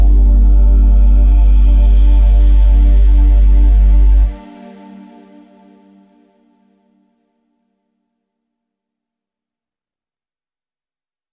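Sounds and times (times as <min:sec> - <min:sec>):
deep bass synth pad in E: 0:00.0 - 0:05.1.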